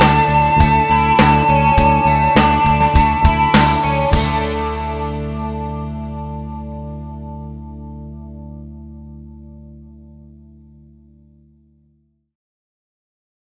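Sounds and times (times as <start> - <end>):
guitar amplifier with G12M Greenback 2x12 speakers: 0.0 - 11.9.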